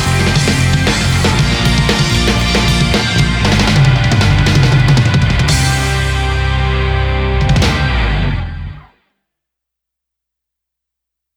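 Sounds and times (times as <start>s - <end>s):
backing track: 0.0s - 8.9s.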